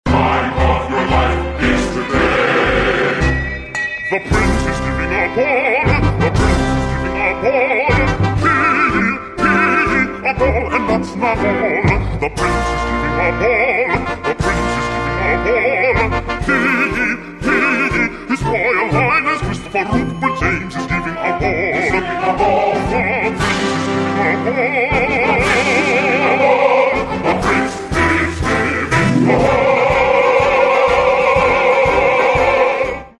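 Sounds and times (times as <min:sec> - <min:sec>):
bass and alto voices: 0:00.1 - 0:03.4, 0:04.3 - 0:33.1.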